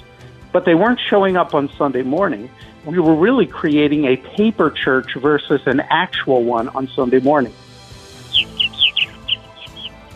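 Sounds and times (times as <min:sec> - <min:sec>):
speech: 0:00.5 - 0:07.6
purple martin colony calls: 0:08.2 - 0:10.1.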